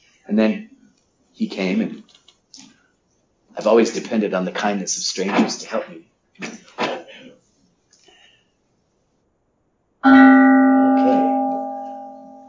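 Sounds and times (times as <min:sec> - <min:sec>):
speech: 0:00.3 - 0:00.7, 0:01.4 - 0:02.0, 0:03.6 - 0:06.6
bell being rung: 0:10.0 - 0:12.4.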